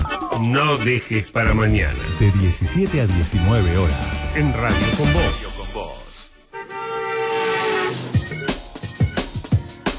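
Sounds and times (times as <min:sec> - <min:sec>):
speech: 0:00.4 - 0:06.0
horn blast: 0:03.3 - 0:08.4.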